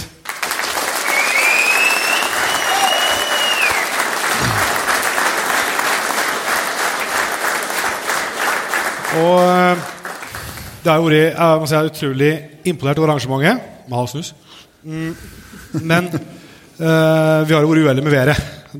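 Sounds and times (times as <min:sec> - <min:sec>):
audience applause: 0:00.0 - 0:10.8
speech: 0:09.2 - 0:09.9, 0:10.8 - 0:18.7.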